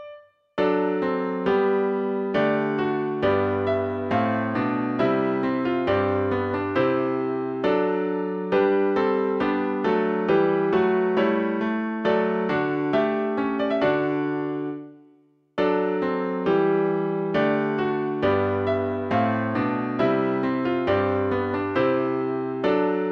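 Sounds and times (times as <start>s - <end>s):
flute and piano chorale: 0.7s - 14.9s, 15.7s - 23.1s.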